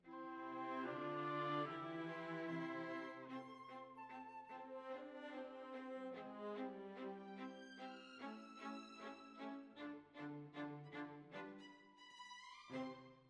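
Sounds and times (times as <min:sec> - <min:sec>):
violas playing: 0:00.1 - 0:13.2.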